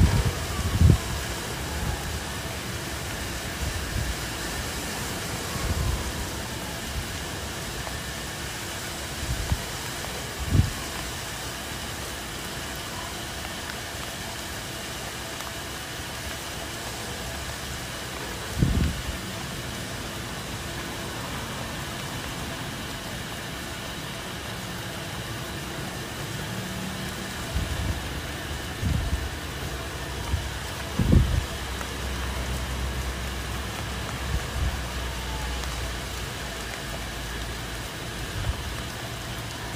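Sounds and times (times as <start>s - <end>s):
calm rain falling over a city: 0.0s - 39.7s
traffic rumble: 0.0s - 39.7s
wind: 0.0s - 39.7s.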